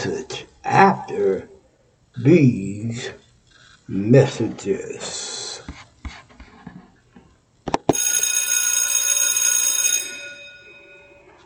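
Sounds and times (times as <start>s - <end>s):
speech: 0.0s - 1.5s, 2.2s - 3.2s, 3.9s - 5.2s
bell ringing: 7.9s - 11.4s.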